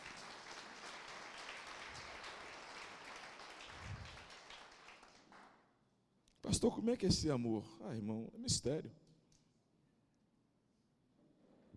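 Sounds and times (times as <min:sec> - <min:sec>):
audience applause: 0:00.0 - 0:05.4
speech: 0:06.5 - 0:09.0.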